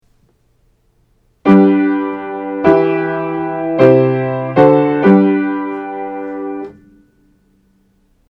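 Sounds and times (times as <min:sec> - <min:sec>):
root position triad chords: 0:01.4 - 0:07.0.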